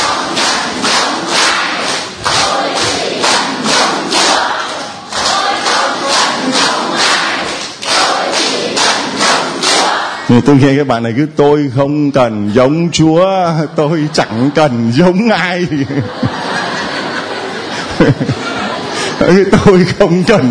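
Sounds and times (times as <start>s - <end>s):
crowd clapping and stomping to a worship song: 0.0s - 10.3s
crowd voices: 0.0s - 10.5s, 13.2s - 20.4s
speech: 10.3s - 16.4s, 19.2s - 20.4s
laughter: 13.4s - 20.4s.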